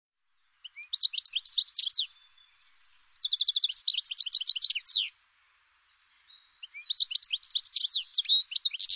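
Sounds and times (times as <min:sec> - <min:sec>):
bird giving fast high-pitched chirps and buzzy trilled notes: 0:00.6 - 0:02.4, 0:03.0 - 0:05.1, 0:06.2 - 0:08.9.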